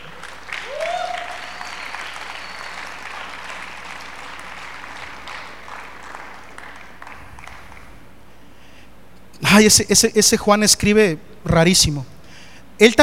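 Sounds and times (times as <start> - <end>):
audience applause: 0.0 - 8.0
rising whoop: 0.5 - 3.1
speech: 9.6 - 12.1, 12.8 - 13.0.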